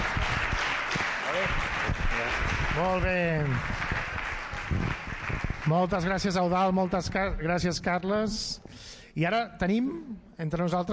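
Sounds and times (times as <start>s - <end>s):
audience applause: 0.0s - 7.2s
speech: 2.8s - 3.8s, 5.7s - 10.9s.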